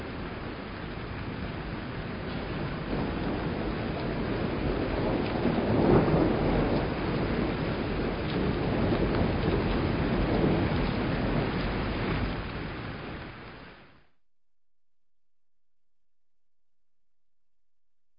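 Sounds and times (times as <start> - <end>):
thunderstorm: 0.0 - 14.0.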